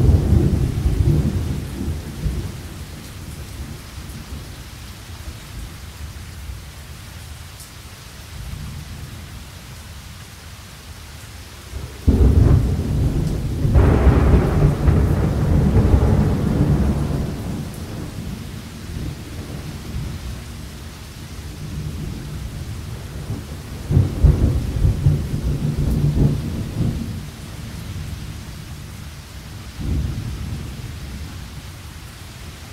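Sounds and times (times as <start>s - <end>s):
thunderstorm: 0.0s - 4.6s, 11.7s - 29.0s, 29.7s - 31.6s.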